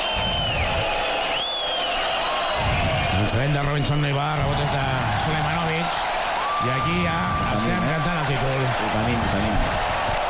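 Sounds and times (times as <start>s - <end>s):
crowd ovation: 0.0s - 10.2s
speech: 3.2s - 10.0s.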